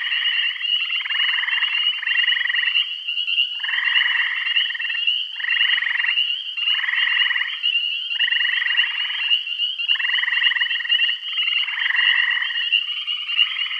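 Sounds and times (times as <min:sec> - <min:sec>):
frog chorus of overlapping pulsed buzzy trills in Bath County: 0:00.0 - 0:13.7.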